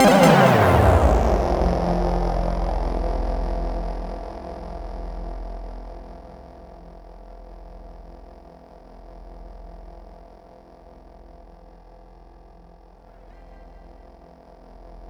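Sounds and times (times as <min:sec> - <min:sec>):
synth line in C4: 0:00.0 - 0:03.3.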